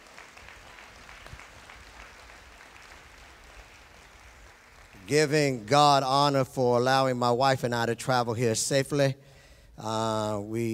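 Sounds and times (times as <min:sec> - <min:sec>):
audience applause: 0:00.0 - 0:05.8
speech: 0:05.1 - 0:10.7.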